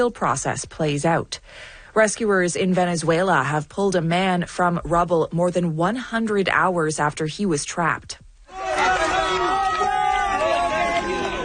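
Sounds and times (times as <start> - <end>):
speech: 0.0 - 8.2
onlookers cheering at a rubble rescue: 8.5 - 11.4.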